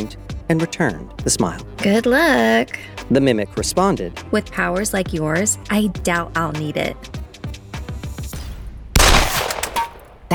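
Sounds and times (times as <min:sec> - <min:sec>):
speech: 0:00.0 - 0:07.2
pistol shots fired in an audio drama: 0:09.0 - 0:10.3.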